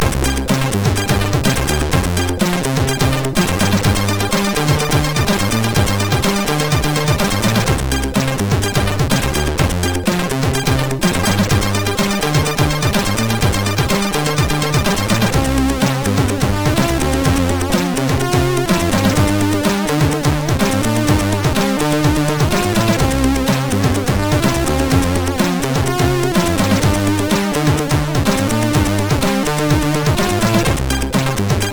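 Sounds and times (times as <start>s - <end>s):
funky ballad on MOS6581R3 sound chip: 0.0s - 31.7s.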